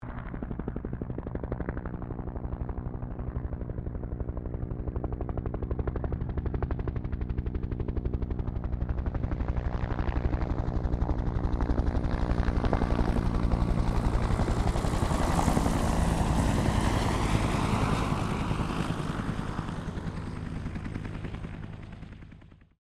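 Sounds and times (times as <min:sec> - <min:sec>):
distant 1967 Bell UH-1 Iroquois helicopter passing: 0:00.0 - 0:22.7.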